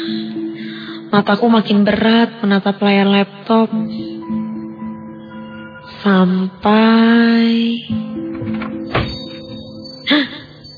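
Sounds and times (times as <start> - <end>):
speech: 1.1 - 4.0, 6.0 - 8.0
bedroom door opening: 8.2 - 10.0.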